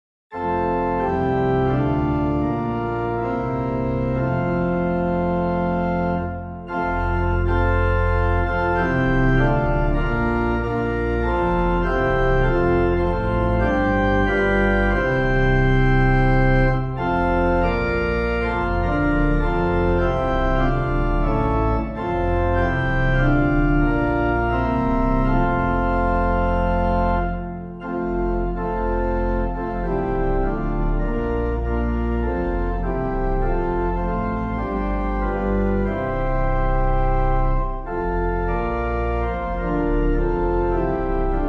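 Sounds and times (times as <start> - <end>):
organ playing a hymn: 0.3 - 41.4.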